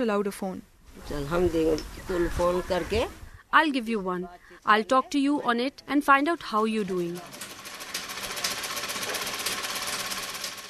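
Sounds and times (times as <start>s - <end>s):
speech: 0.0s - 7.5s
sewing machine running: 6.5s - 10.6s.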